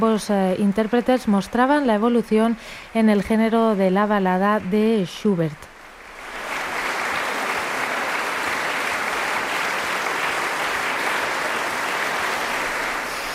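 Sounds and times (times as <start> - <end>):
speech: 0.0 - 5.7
concert audience ovation after a classical recital in a concert hall: 5.8 - 13.3.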